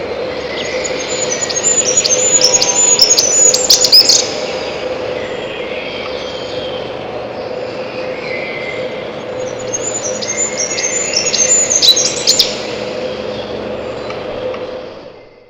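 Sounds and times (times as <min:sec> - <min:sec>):
Siberian chiffchaff song: 0:00.1 - 0:06.9, 0:07.5 - 0:15.4.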